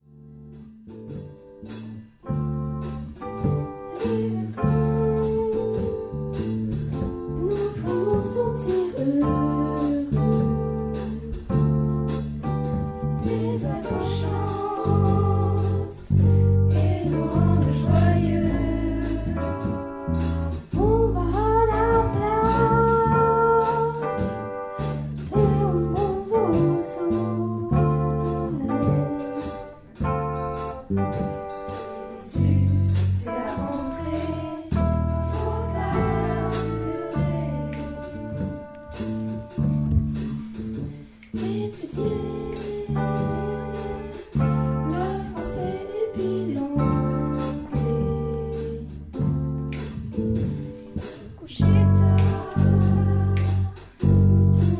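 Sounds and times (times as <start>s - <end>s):
jazz music: 0.0s - 54.7s.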